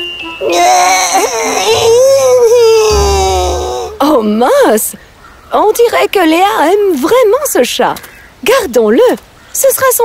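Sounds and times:
baby crying: 0.4s - 4.0s
speech: 4.4s - 10.0s.

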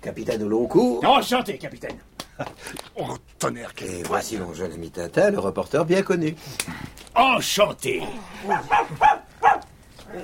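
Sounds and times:
speech: 0.0s - 9.2s
frightened dog barking: 8.4s - 10.2s.

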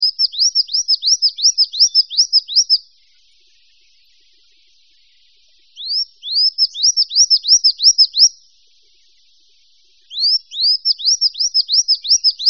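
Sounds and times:
birds chirping: 0.0s - 12.4s.

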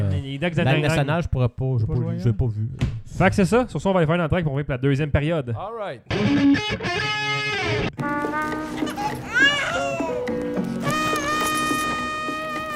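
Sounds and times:
speech: 0.2s - 8.6s
baby wailing in a YouTube advertisement: 8.8s - 12.7s.

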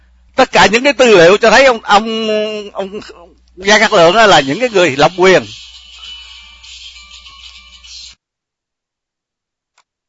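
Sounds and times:
speech: 0.4s - 5.6s
phone ringing with an incoming call: 1.2s - 8.2s.

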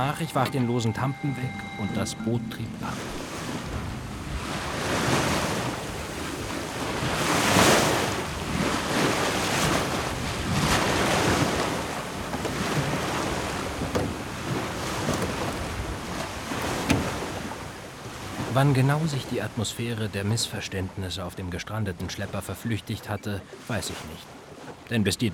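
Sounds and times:
speech: 0.0s - 3.9s, 18.6s - 25.3s
sea waves washing and surging in repeated swells: 0.0s - 25.3s
gusting wind buffeting: 2.4s - 18.5s.

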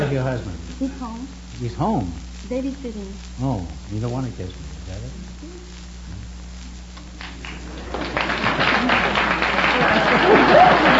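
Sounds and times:
laughter: 0.0s - 1.0s, 7.6s - 10.9s
speech: 0.1s - 5.6s
studio audience applauding: 7.2s - 10.9s.

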